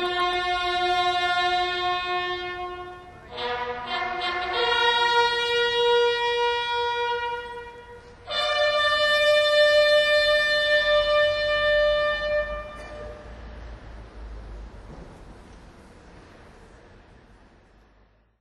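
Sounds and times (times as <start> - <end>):
fanfare: 0.0 - 13.3.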